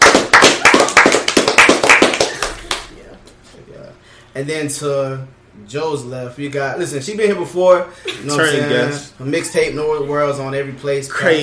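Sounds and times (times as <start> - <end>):
people clapping for a guest: 0.0 - 3.0
speech: 4.4 - 11.4.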